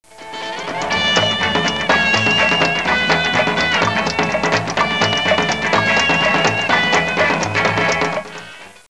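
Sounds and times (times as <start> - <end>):
instrumental music: 0.1 - 8.8.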